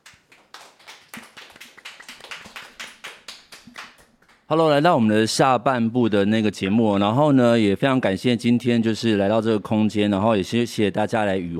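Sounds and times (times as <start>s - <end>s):
audience applause: 0.0s - 4.5s
speech: 4.5s - 11.5s.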